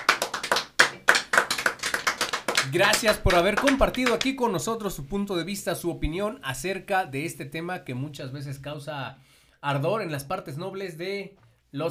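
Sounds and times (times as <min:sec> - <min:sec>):
small group applause for guests: 0:00.0 - 0:04.4
speech: 0:02.7 - 0:11.9.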